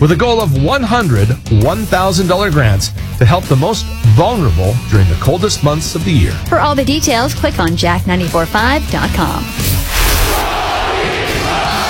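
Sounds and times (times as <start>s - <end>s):
speech: 0.0s - 10.6s
Russian crowd chanting an American's name: 9.9s - 11.8s.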